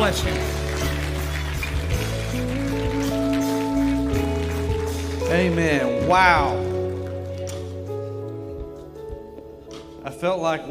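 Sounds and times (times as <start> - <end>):
church audience applause: 0.0 - 7.5
speech: 0.1 - 0.5, 5.4 - 6.7, 10.2 - 10.6.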